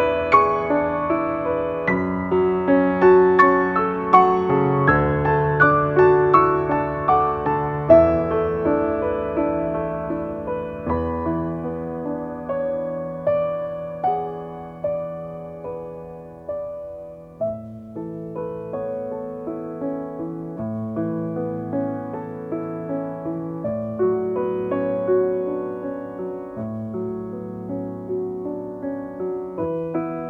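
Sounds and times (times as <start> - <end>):
piano reprise: 0.0 - 30.2.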